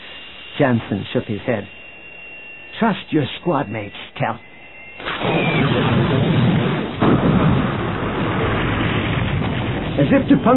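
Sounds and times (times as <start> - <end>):
speech: 0.6 - 1.8, 2.8 - 4.5, 5.2 - 5.8, 10.0 - 10.5
Star Wars laser blast striking a gun emplacement: 5.0 - 10.5
second sharp impact: 5.0 - 10.5.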